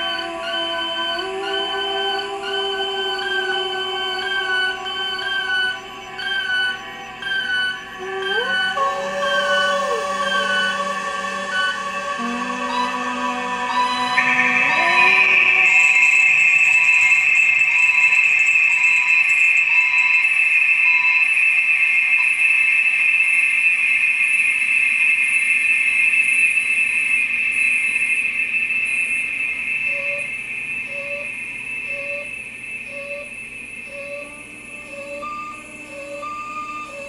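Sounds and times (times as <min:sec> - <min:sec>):
voice: 0:00.0 - 0:06.8, 0:08.0 - 0:15.8, 0:34.0 - 0:37.0
noise: 0:00.0 - 0:37.0.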